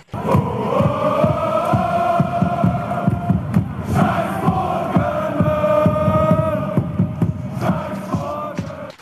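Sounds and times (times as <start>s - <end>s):
large crowd of protesting football fans chanting in unison outdoors: 0.0s - 9.0s
sharp claps or drum hits: 8.1s - 9.0s.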